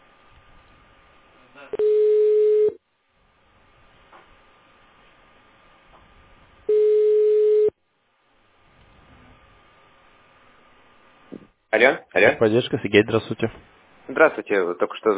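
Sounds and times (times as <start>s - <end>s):
telephone ringback tone: 1.8s - 2.8s, 6.7s - 7.7s
speech: 11.8s - 15.1s.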